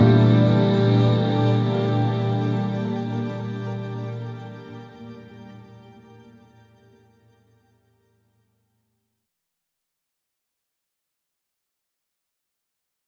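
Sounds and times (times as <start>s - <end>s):
spacey dreamy chill slightly dark music without bass: 0.0s - 7.0s.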